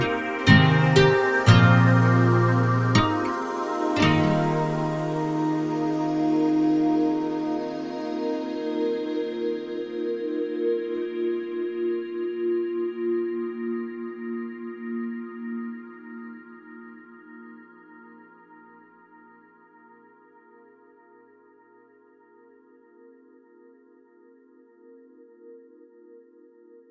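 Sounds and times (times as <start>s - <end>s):
guitar: 0.0s - 14.0s.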